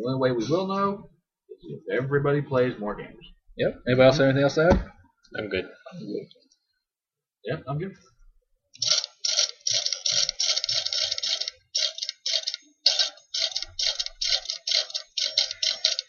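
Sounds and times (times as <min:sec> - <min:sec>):
speech: 0:00.0 - 0:06.4, 0:07.4 - 0:08.1
typewriter typing: 0:08.8 - 0:16.0.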